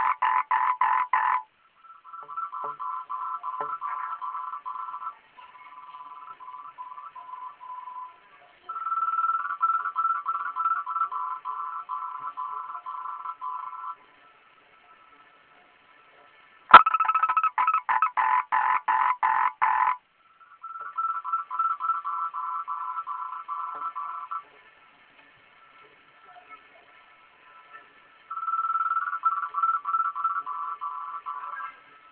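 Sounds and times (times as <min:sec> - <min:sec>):
frog calling: 0:00.0 - 0:08.0, 0:08.7 - 0:14.0, 0:16.7 - 0:24.5, 0:28.3 - 0:31.8.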